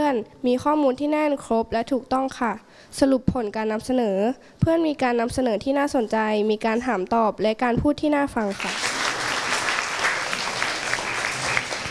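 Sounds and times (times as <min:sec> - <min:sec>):
speech: 0:00.1 - 0:09.0
audience applause: 0:08.5 - 0:11.9.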